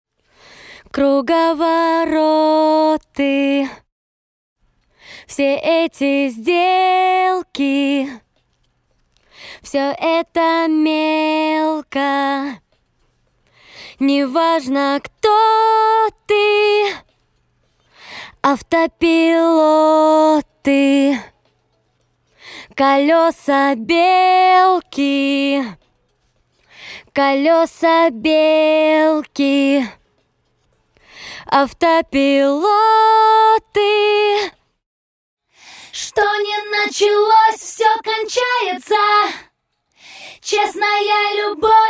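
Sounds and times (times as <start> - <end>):
a cappella singing: 0.9 - 3.9, 5.3 - 8.2, 9.6 - 12.6, 14.0 - 17.1, 18.4 - 21.4, 22.6 - 25.8, 27.0 - 30.0, 31.4 - 34.6, 35.9 - 39.5, 40.1 - 41.8.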